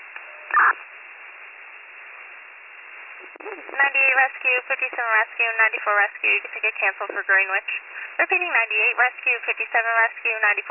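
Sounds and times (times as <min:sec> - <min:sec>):
radio dispatch alert tones: 0:00.3 - 0:00.8
speech: 0:03.2 - 0:10.6.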